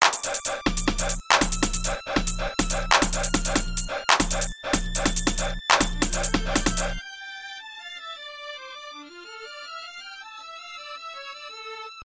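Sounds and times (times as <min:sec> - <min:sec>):
hip hop music: 0:00.0 - 0:07.0.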